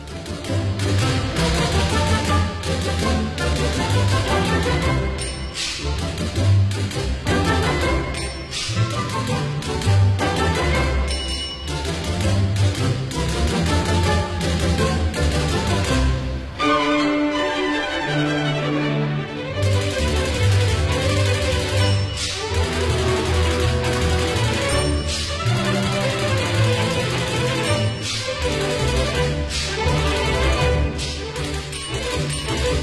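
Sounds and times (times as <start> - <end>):
loud bright orchestral music: 0.0 - 32.8
typewriter line-change warning bell: 5.1 - 5.8, 8.0 - 9.8, 11.0 - 13.0, 19.7 - 29.2, 30.1 - 32.8.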